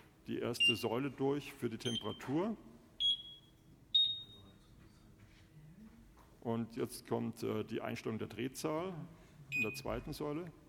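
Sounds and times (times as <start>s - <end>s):
speech: 0.3s - 2.7s, 6.4s - 10.6s
appliance beeps signalling it is ready: 0.6s - 1.0s, 3.0s - 4.6s, 9.5s - 9.9s.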